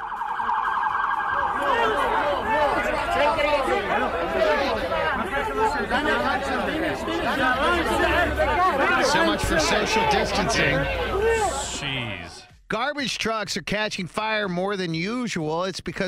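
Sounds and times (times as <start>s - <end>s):
electronic wail: 0.0s - 6.7s
large crowd chattering and calling in the street: 0.4s - 12.5s
speech: 5.4s - 11.2s, 11.8s - 16.0s.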